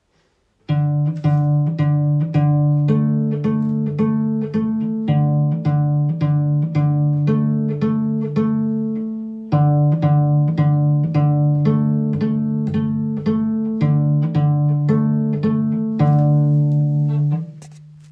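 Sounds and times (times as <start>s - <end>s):
cello pizzicato: 0.0s - 18.1s.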